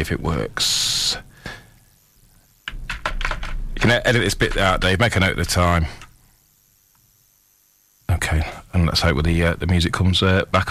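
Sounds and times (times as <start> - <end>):
speech: 0.0 - 1.3, 3.8 - 6.0, 8.3 - 10.6
typing on a keyboard: 2.7 - 3.6.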